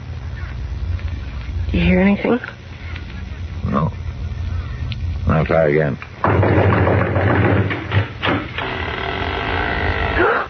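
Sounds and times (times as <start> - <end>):
steady low hum: 0.0 - 10.4
speech: 1.8 - 2.6, 5.5 - 6.8
heavy banging on a door: 6.2 - 8.6
door creaking open: 6.2 - 10.2.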